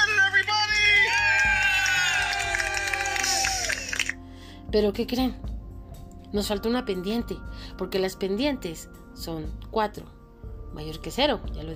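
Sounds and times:
audience applause: 0.3s - 4.2s
speech: 4.7s - 5.5s, 6.3s - 11.7s.

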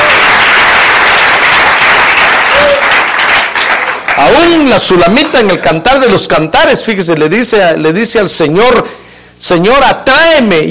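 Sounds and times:
audience applause: 0.0s - 4.7s
speech: 4.2s - 10.6s.

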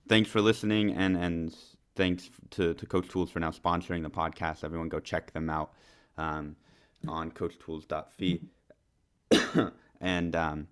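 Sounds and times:
speech: 0.1s - 8.6s, 9.3s - 10.6s
person coughing: 9.3s - 9.9s.

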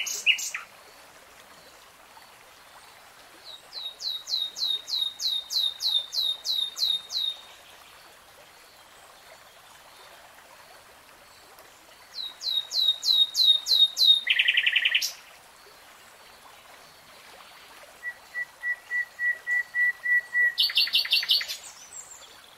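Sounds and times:
Nightingale song: 0.0s - 0.7s, 3.4s - 7.7s, 12.1s - 15.2s, 18.0s - 22.5s.

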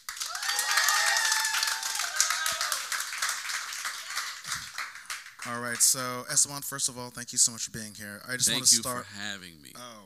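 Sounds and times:
audience applause: 0.0s - 6.0s
high whooping cheers: 0.2s - 4.7s
speech: 5.4s - 10.0s.

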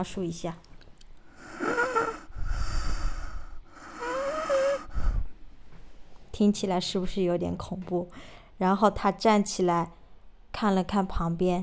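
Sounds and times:
speech: 0.0s - 0.7s, 6.4s - 10.0s, 10.6s - 11.6s
voice imitating deep heavy breathing: 1.2s - 5.4s.

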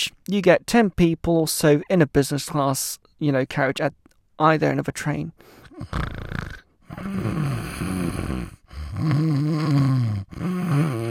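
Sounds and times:
speech: 0.2s - 11.1s
passengers snoring in a train carriage: 5.7s - 11.1s.

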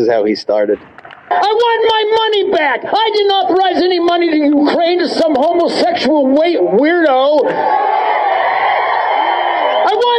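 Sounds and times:
speech: 0.0s - 8.0s
crowd cheering and clapping: 7.2s - 10.1s
scattered whoops: 7.4s - 10.1s.

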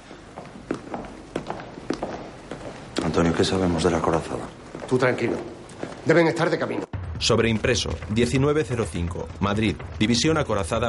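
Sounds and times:
footsteps of two men walking along a parliament building corridor: 0.0s - 6.9s
speech: 3.2s - 10.8s.

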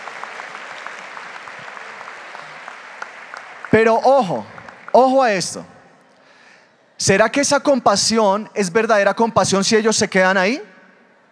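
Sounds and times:
audience applause for actors: 0.0s - 5.2s
speech: 3.7s - 5.7s, 7.0s - 10.7s.

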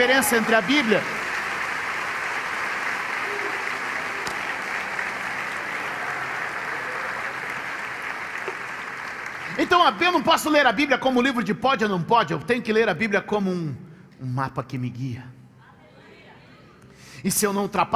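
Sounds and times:
speech: 0.0s - 1.2s, 9.6s - 15.4s, 17.2s - 17.9s
audience applause: 0.0s - 10.3s.

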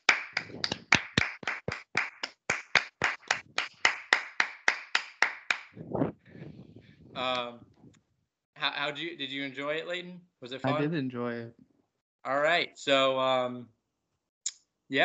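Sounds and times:
hands clapping: 0.0s - 5.8s
speech: 7.2s - 7.7s, 8.6s - 11.6s, 12.2s - 13.8s.

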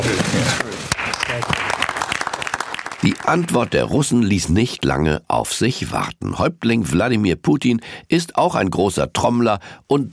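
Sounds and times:
cabinet clapping loudly: 0.0s - 4.1s
speech: 3.3s - 10.1s.

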